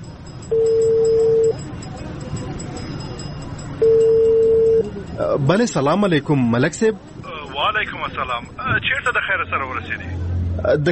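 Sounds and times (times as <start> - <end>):
outgoing telephone call ringing tone: 0.5 - 1.6, 3.8 - 4.9
speech: 5.2 - 10.9.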